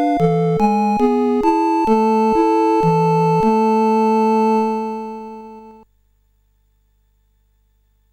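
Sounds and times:
overdrive SID CSG8580R5 chiptune: 0.0 - 5.8.

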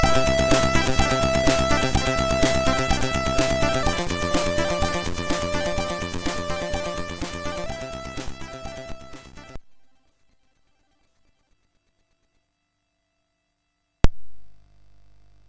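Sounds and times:
MOS6581R3 SID chip high-resolution demo kit: 0.0 - 9.6.

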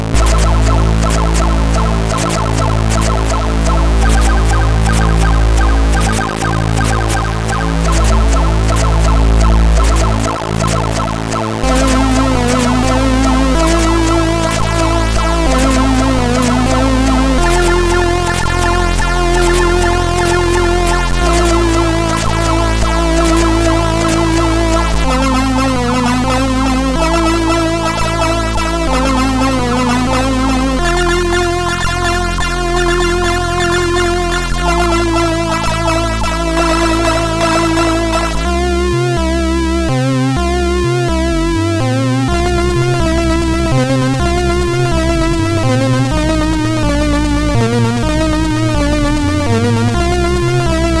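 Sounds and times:
SID chip MOS6581R4 music: 0.1 - 50.9.

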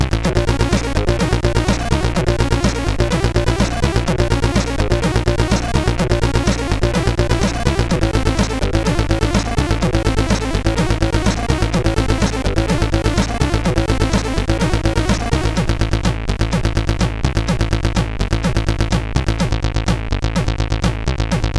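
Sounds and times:
intro tune on SID CSG8580R5 chip: 0.1 - 21.4.

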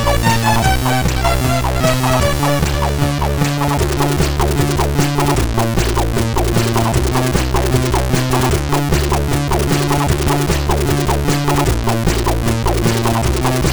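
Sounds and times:
chiptune music on a MOS6581R3 SID chip: 0.0 - 13.6.

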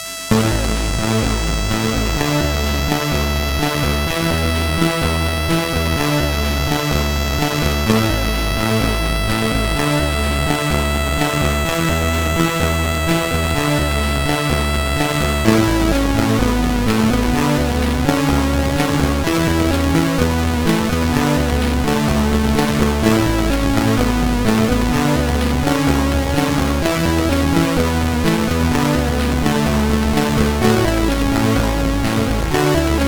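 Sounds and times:
sad music on SID CSG8580R5 chip: 0.0 - 33.0.

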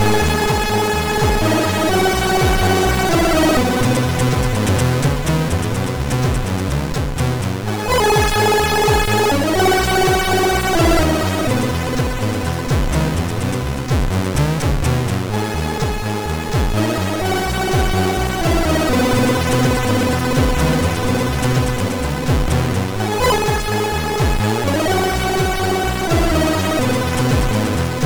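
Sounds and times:
MOS6581R3 chiptune intro music: 0.0 - 28.0.

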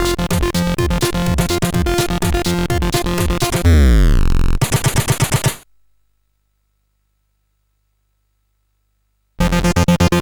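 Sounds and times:
techno on CSG8580R5 SID chip: 0.0 - 5.6, 9.4 - 10.1.

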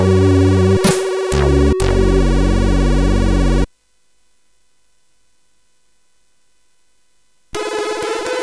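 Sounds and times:
chiptune game music on a SID chip: 0.0 - 3.7.

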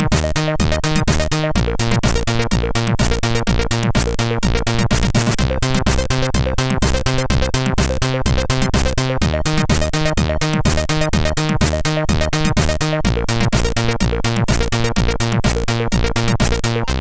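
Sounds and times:
SID chip CSG8580R5 music: 0.0 - 16.9.

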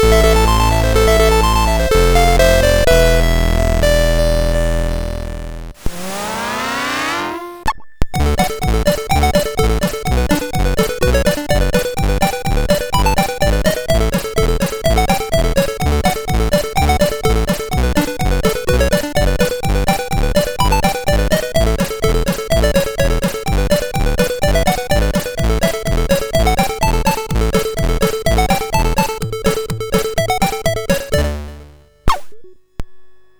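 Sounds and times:
MOS6581R3 chip tune: 0.0 - 32.7.

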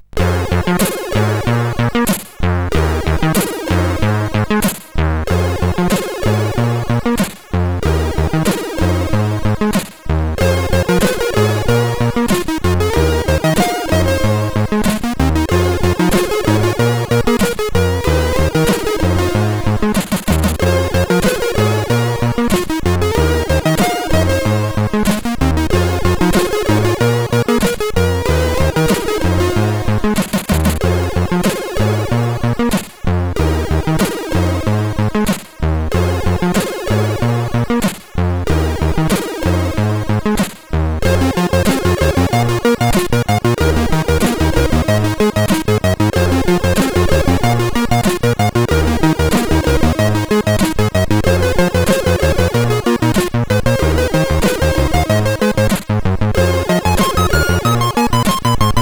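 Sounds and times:
SID chiptune music on a CSG8580R5 chip: 0.2 - 37.8, 38.4 - 40.4, 41.0 - 58.7.

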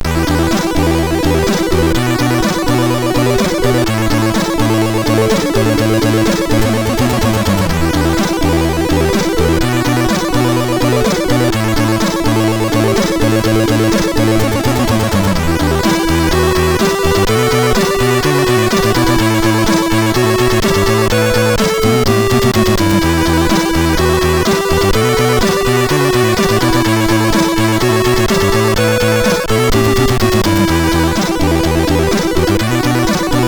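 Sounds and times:
SID MOS6581R4 chip music: 0.0 - 33.4.

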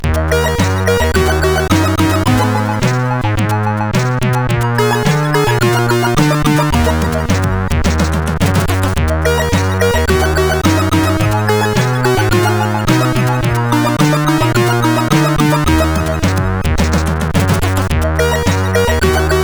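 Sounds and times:
SID CSG8580 chip music: 0.0 - 19.4.

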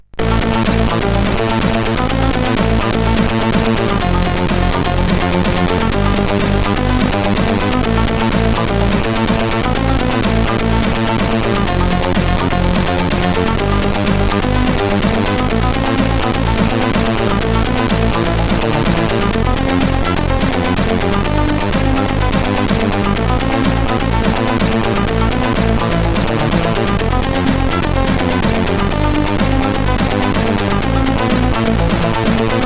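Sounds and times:
tune on CSG8580R5 chip: 0.1 - 32.6.

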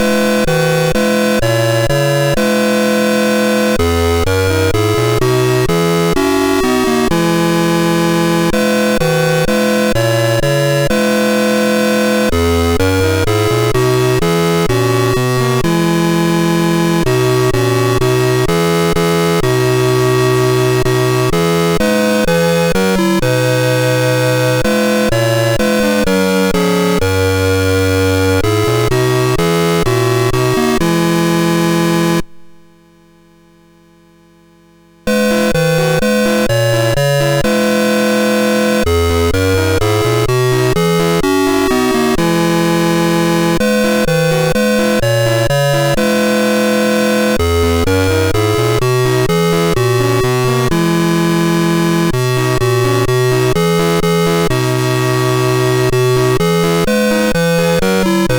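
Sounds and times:
hymn played on MOS6581 sound chip: 0.0 - 34.0, 34.6 - 58.3.

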